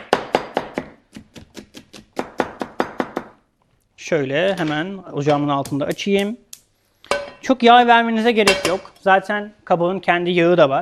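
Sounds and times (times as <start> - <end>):
knife chopping an onion: 0.0 - 3.4
speech: 4.1 - 6.4, 7.5 - 10.7.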